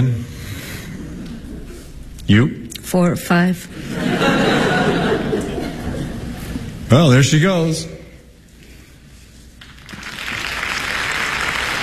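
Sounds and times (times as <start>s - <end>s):
speech: 2.3s - 4.3s, 6.9s - 8.0s
laughter: 3.7s - 6.7s
audience applauding a third act entrance: 9.6s - 11.8s.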